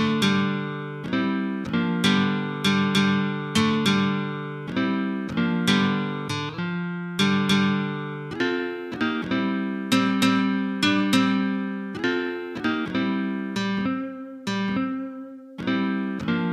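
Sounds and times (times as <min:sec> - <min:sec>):
Chicago style blues rhythm in open G: 0:00.0 - 0:16.5.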